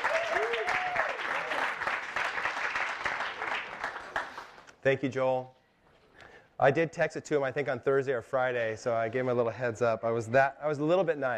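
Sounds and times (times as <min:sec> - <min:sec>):
audience round of applause: 0:00.0 - 0:04.6
speech: 0:04.8 - 0:05.6, 0:06.6 - 0:11.3.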